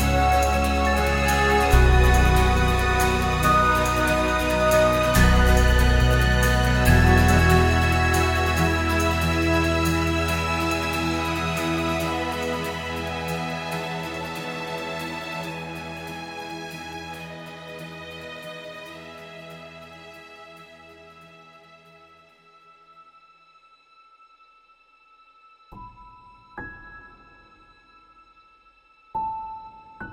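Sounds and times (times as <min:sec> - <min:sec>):
horn: 0:00.0 - 0:16.6.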